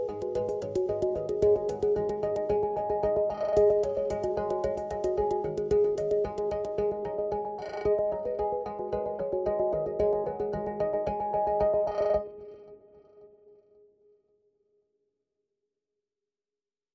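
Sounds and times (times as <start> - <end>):
positive chord progression: 0.0 - 11.8.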